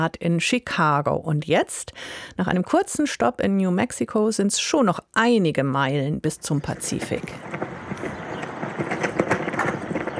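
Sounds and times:
speech: 0.0 - 7.6
US flag flapping in the wind: 6.8 - 10.1.

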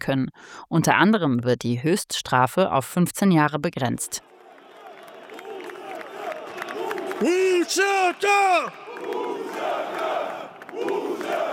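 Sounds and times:
speech: 0.0 - 4.3, 7.2 - 10.0
crowd of UCK supporters cheering outside parliament: 4.1 - 11.5.

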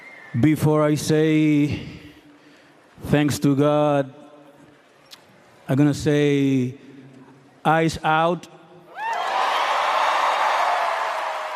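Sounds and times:
speech: 0.3 - 2.0, 3.0 - 4.2, 5.7 - 6.8, 7.6 - 8.6
audience applause standing ovation: 9.1 - 11.5.

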